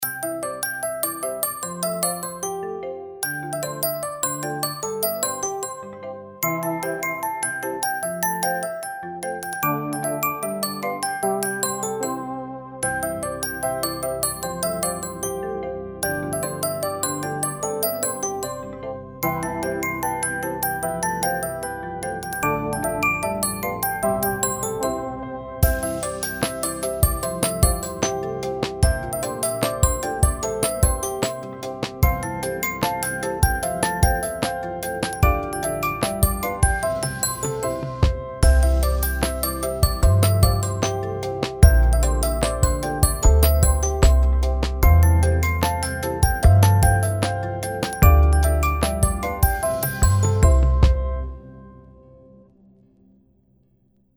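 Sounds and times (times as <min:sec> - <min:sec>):
groovy traditional-style ringtone: 0:00.0 - 0:02.6, 0:03.2 - 0:15.4, 0:16.0 - 0:51.4.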